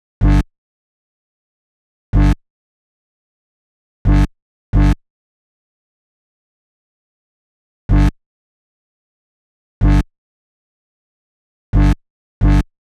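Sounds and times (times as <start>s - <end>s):
bass in G: 0.2s - 0.5s, 2.1s - 2.4s, 4.0s - 5.0s, 7.9s - 8.2s, 9.8s - 10.1s, 11.7s - 12.7s.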